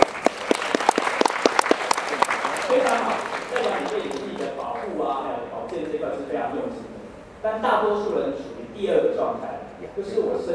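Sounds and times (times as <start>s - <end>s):
audience applause: 0.0s - 5.0s
speech: 4.8s - 10.5s.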